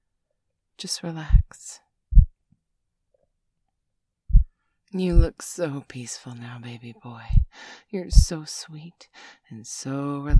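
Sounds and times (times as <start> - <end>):
speech: 0.8 - 1.8, 4.9 - 10.3
slow rhythmic heartbeat: 1.2 - 2.4, 4.3 - 5.3, 7.2 - 8.4.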